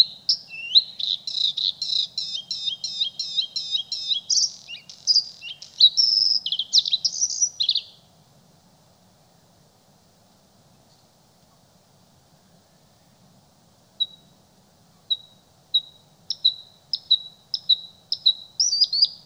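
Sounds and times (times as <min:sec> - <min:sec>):
bluethroat bird: 0:00.0 - 0:08.0, 0:15.0 - 0:19.2.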